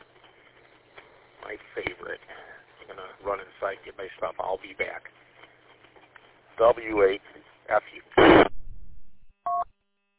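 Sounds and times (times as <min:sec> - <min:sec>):
speech: 0:01.5 - 0:05.3, 0:06.6 - 0:08.5
radio repeater beep when the transmitter unkeys: 0:08.2 - 0:08.5.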